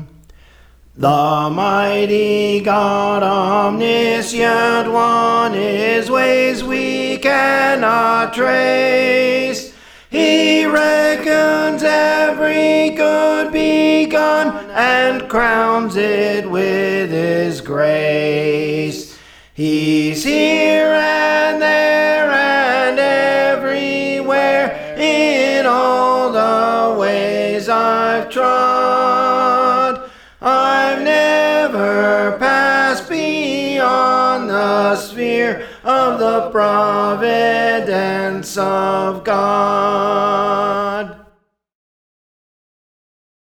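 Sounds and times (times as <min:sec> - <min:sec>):
soprano singing: 0:01.0 - 0:41.2.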